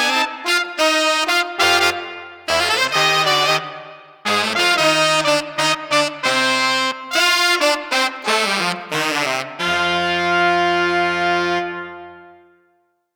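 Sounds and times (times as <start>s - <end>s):
funky street brass combo playing without drums: 0.0s - 12.2s.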